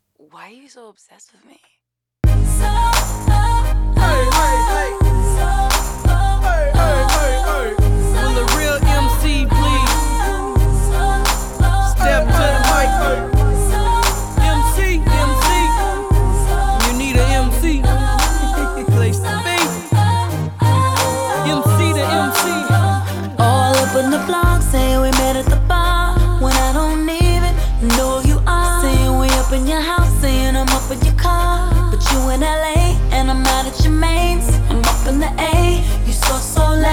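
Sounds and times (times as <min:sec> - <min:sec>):
speech: 0:00.2 - 0:01.8
pop song instrumental intro with heavy bass and bright synths: 0:02.2 - 0:36.9.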